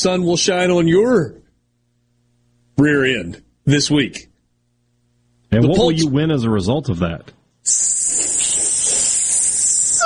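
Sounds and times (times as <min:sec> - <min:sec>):
speech: 0:00.0 - 0:01.4, 0:02.8 - 0:04.3, 0:05.5 - 0:08.0
sausage sizzling: 0:07.7 - 0:10.0.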